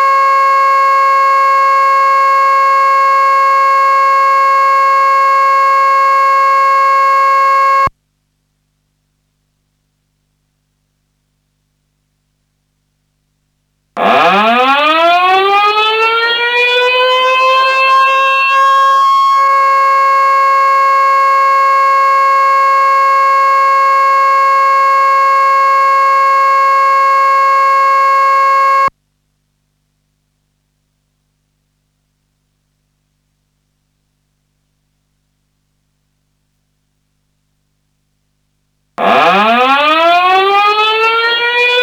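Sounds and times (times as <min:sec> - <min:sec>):
siren: 0:00.0 - 0:07.9, 0:14.0 - 0:28.9, 0:39.0 - 0:41.8.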